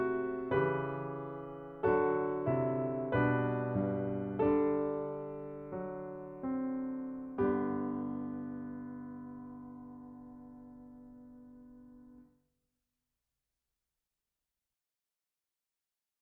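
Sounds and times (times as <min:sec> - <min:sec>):
piano chorale: 0:00.0 - 0:12.3.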